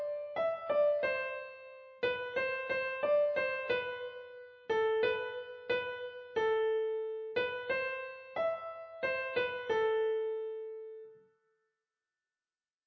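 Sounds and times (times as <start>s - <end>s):
very easy solo piano arrangement of a German Advent carol: 0.0s - 11.2s.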